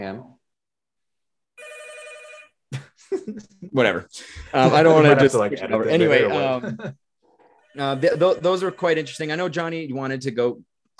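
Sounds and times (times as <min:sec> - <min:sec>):
speech: 0:00.0 - 0:00.4, 0:03.1 - 0:07.0, 0:07.8 - 0:10.9
telephone ringing with electronic trill: 0:01.6 - 0:02.6, 0:07.4 - 0:09.6.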